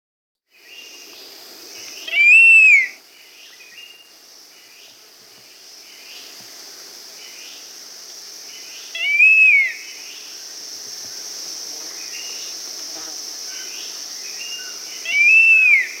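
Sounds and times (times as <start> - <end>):
scaled fruiteater giving a long whistle in South America: 2.0 - 3.0, 9.0 - 9.8, 14.4 - 15.9.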